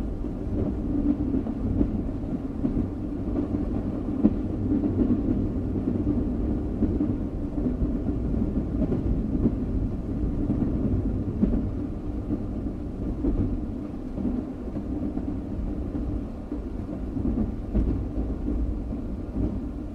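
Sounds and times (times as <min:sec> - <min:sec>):
train moving on tracks: 0:00.0 - 0:19.9.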